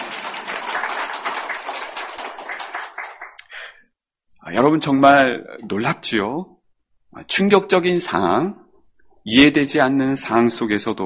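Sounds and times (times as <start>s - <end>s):
audience applause: 0.0s - 3.4s
speech: 4.5s - 6.6s, 7.2s - 8.6s, 9.2s - 11.0s.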